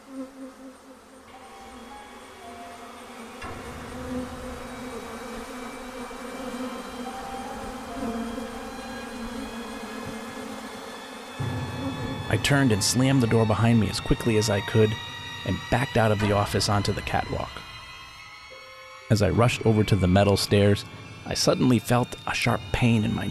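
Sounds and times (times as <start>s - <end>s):
swarm of bees buzzing: 0.0s - 18.3s
speech: 12.4s - 17.7s, 19.1s - 23.2s.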